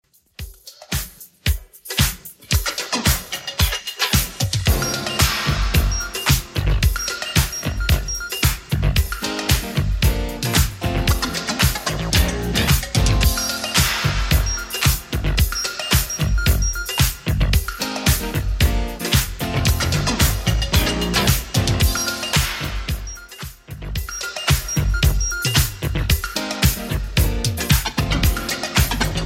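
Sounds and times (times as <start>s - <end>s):
1980s Redrum drum machine beat: 0.0s - 29.2s.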